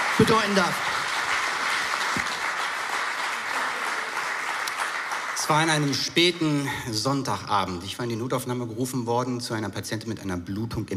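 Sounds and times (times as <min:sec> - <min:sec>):
audience applause: 0:00.0 - 0:06.6
speech: 0:00.2 - 0:01.0, 0:05.5 - 0:10.9.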